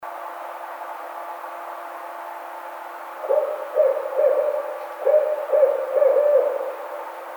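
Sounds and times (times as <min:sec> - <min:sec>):
steady background hum: 0:00.0 - 0:07.3
barred owl hooting: 0:03.2 - 0:07.3.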